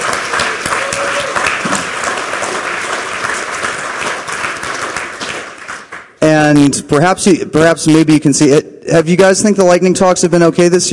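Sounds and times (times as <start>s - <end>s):
audience applause: 0.0s - 6.2s
speech: 6.6s - 10.9s.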